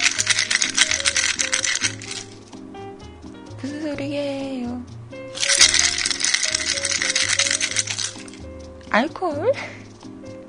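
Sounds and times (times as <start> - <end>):
xylitol mint candies rattling in container: 0.0 - 2.4, 5.4 - 8.4
faint low musical tone: 0.0 - 10.4
speech: 3.9 - 5.0, 8.9 - 9.8.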